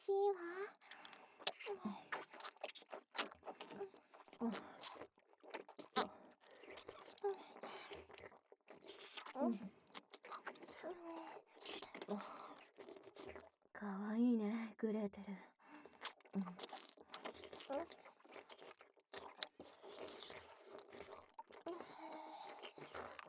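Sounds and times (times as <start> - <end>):
speech: 0.0 - 0.8, 15.0 - 15.5
two people licking and sucking candy: 0.8 - 13.6, 15.8 - 23.2.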